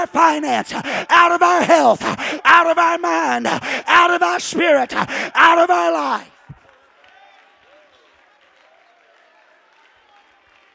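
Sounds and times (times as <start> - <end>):
speech: 0.0 - 6.4
audience clapping: 5.0 - 10.7.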